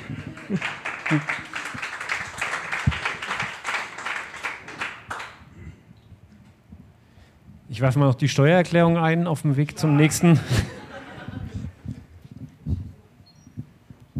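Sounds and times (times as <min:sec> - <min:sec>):
laughter: 0:00.0 - 0:02.0, 0:09.8 - 0:12.0
live audience applause: 0:00.0 - 0:05.4
speech: 0:00.1 - 0:01.5, 0:07.8 - 0:10.8
faint voices murmuring: 0:09.7 - 0:10.8.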